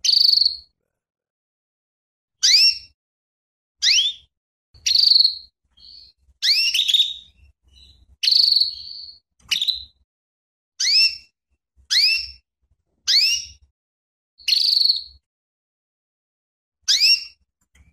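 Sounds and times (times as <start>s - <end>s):
female canary calling with sharp sweeping chirps and buzzy notes: 0.0s - 0.8s, 2.4s - 3.0s, 3.8s - 10.0s, 10.8s - 12.4s, 13.1s - 13.7s, 14.4s - 15.3s, 16.9s - 17.9s.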